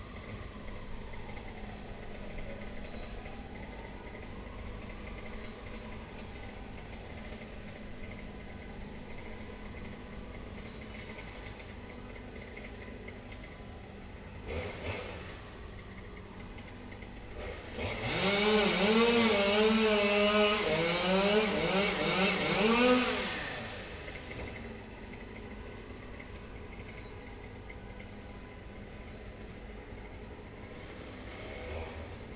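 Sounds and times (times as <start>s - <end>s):
chainsaw: 14.4s - 15.5s, 17.2s - 24.6s, 30.7s - 32.3s.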